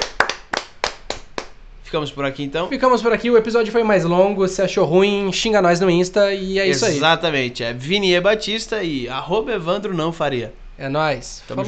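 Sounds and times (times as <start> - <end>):
people clapping: 0.0 - 1.6
speech: 1.9 - 11.6.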